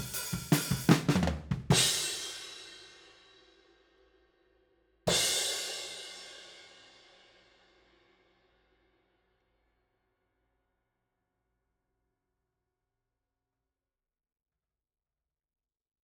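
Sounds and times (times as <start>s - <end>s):
drum overheads at 160 BPM: 0.0s - 2.6s.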